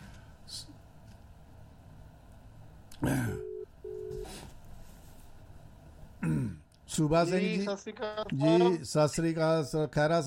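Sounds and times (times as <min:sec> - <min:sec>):
speech: 0:03.0 - 0:03.5, 0:07.0 - 0:10.2
telephone call tones: 0:03.4 - 0:04.3.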